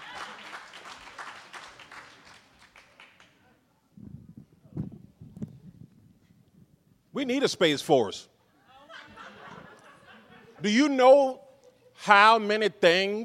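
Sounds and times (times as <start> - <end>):
audience applause for comedians at a comedy show: 0.0 - 3.4
speech: 7.2 - 8.3, 10.6 - 11.4, 12.0 - 13.2
laughter: 8.6 - 11.0.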